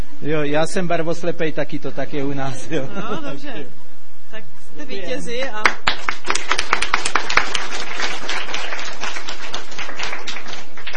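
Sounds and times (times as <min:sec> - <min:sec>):
speech: 0:00.2 - 0:06.4
audience clapping: 0:05.6 - 0:10.9.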